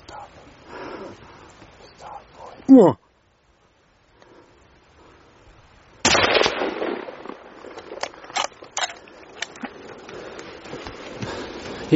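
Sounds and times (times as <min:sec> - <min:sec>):
speech: 0:02.7 - 0:03.0
rifle shot at a moose during a hunt in British Columbia: 0:06.0 - 0:09.6.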